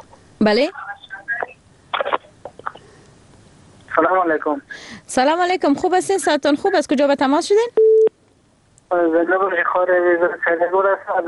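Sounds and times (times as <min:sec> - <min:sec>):
speech: 0:00.4 - 0:00.8, 0:04.0 - 0:07.8, 0:08.9 - 0:11.2
electronic phone tones as a caller's line is connected: 0:07.8 - 0:08.1.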